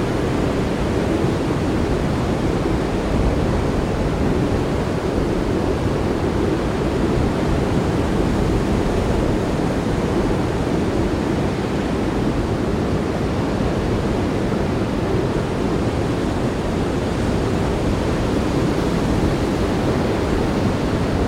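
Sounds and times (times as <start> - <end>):
very strong wind: 0.0 - 21.2.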